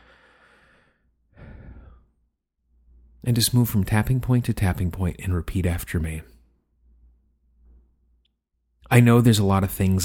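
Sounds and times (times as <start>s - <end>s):
deep breath: 0.0s - 2.2s
speech: 3.2s - 6.3s, 8.9s - 10.0s.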